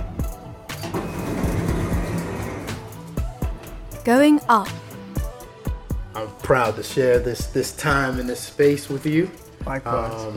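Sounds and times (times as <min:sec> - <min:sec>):
elevator doors closing: 0:00.7 - 0:02.9
speech: 0:04.1 - 0:04.8, 0:06.2 - 0:10.3.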